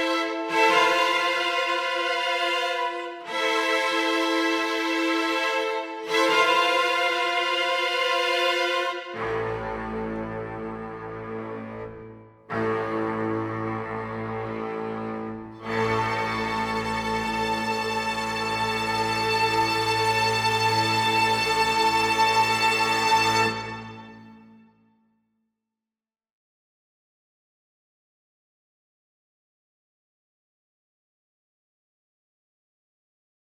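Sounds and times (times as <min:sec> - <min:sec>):
live strings: 0:00.0 - 0:24.7.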